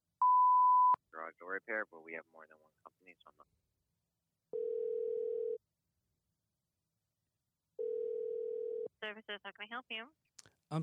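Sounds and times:
speech: 1.5s - 3.7s, 9.0s - 10.8s
telephone ringback tone on outgoing call: 4.6s - 5.6s, 7.8s - 8.9s.

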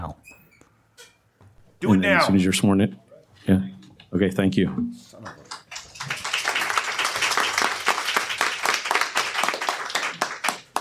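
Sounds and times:
speech: 0.0s - 0.4s, 1.8s - 5.4s
group applause: 5.3s - 10.7s.

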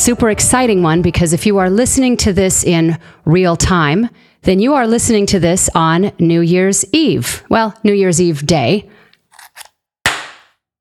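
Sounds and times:
speech: 0.0s - 9.0s
party popper popping: 10.1s - 10.6s.

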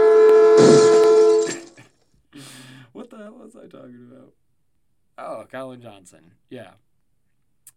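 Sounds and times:
train horn tone in derailing crash sound effect: 0.0s - 1.7s
train derailing crash, smashing grinding metal: 0.4s - 1.7s
speech: 3.5s - 4.4s, 5.2s - 6.9s.

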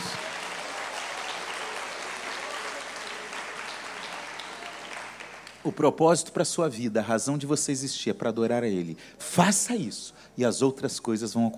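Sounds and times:
audience applause: 0.0s - 5.8s
speech: 5.6s - 11.5s.

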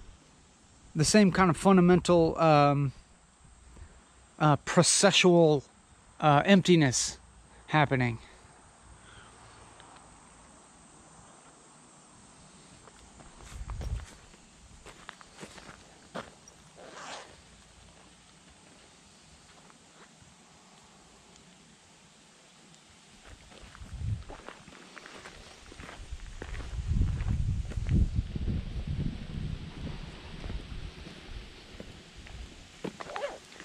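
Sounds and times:
speech: 1.0s - 3.0s, 4.4s - 8.3s
footsteps of someone walking outdoors: 12.6s - 20.8s, 23.1s - 28.5s, 29.4s - 33.6s
low wind rumble: 23.6s - 24.5s, 25.6s - 32.8s.

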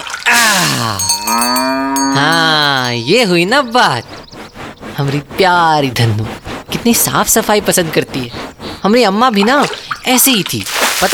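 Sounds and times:
cow mooing: 0.7s - 3.4s
speech: 0.8s - 4.2s, 5.0s - 11.1s.

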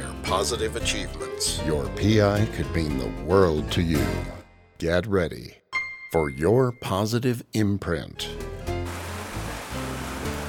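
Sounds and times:
speech: 0.3s - 8.4s
rain falling: 8.8s - 10.4s.

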